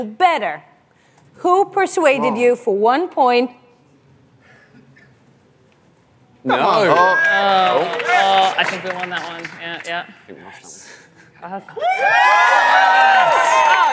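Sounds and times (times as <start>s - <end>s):
speech: 0.0s - 0.7s, 1.4s - 3.6s, 6.4s - 13.9s
audience cheering: 6.6s - 9.7s, 11.8s - 13.9s.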